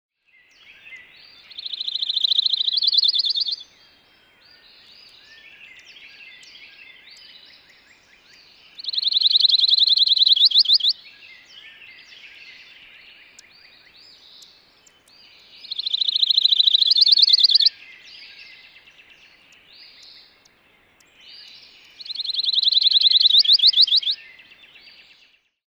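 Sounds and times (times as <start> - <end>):
soft chirps: 0.6 - 25.0
pine warbler singing a rapid trill: 1.6 - 3.6, 7.2 - 11.0, 13.2 - 24.3.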